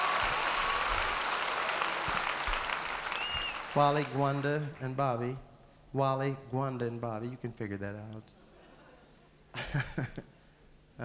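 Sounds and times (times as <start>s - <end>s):
audience applause: 0.0s - 4.8s
speech: 3.8s - 8.4s, 9.5s - 10.3s.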